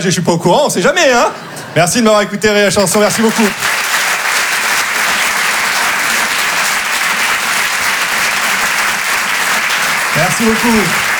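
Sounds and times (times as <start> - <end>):
speech: 0.0 - 3.8, 10.4 - 11.1
crowd applauding for a comedian: 2.8 - 11.1.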